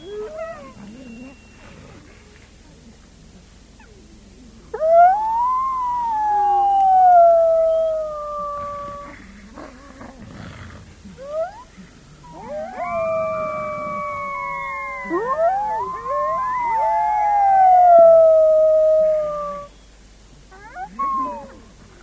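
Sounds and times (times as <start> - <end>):
grey wolf pack in a chorus of howls and yips: 4.7 - 9.8, 11.2 - 19.8, 20.5 - 21.8.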